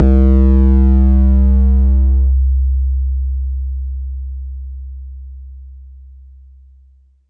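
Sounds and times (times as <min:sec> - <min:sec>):
bass drum: 0:00.0 - 0:05.6.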